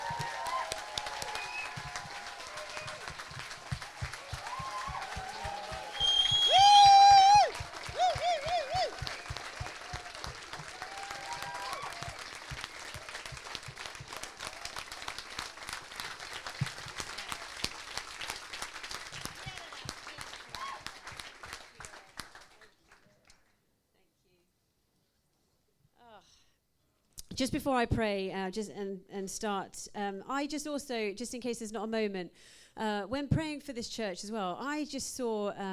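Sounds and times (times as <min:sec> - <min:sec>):
audience round of applause: 0:00.0 - 0:23.1
speech: 0:27.4 - 0:35.7.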